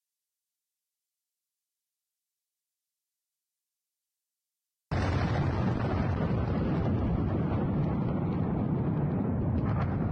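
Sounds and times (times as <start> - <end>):
ammunition depot in Ukraine exploding: 4.9 - 10.0.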